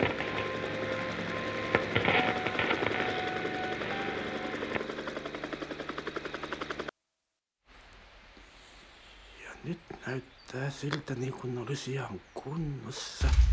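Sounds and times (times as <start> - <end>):
helicopter landing: 0.0 - 6.9, 13.2 - 13.5
speech: 10.1 - 13.5.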